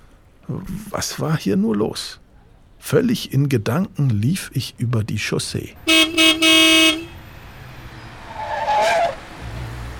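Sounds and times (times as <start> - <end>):
speech: 0.5 - 2.2, 2.8 - 6.6
car engine low rumble: 2.2 - 9.9
car horn blasts: 5.9 - 7.2
tires squealing as a car skids to a stop: 7.8 - 9.9.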